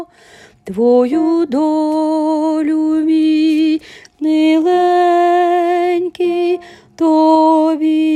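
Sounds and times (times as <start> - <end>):
baryton playing: 0.7 - 8.0.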